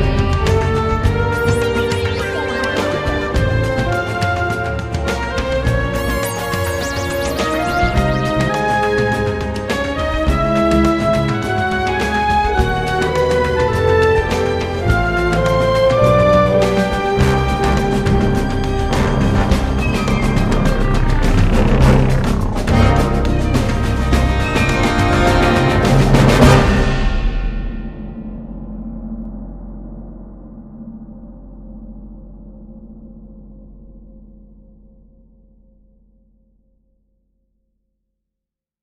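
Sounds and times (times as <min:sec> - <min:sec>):
war action theme music: 0:00.0 - 0:27.4.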